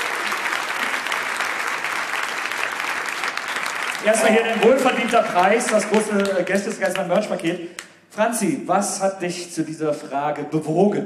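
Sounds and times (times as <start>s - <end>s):
crowd clapping: 0.0s - 8.0s
speech: 4.0s - 11.0s.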